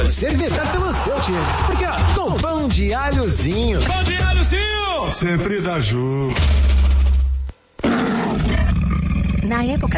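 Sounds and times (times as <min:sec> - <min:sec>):
speech: 0:00.1 - 0:06.8, 0:09.5 - 0:09.9
lion roaring: 0:07.8 - 0:09.9.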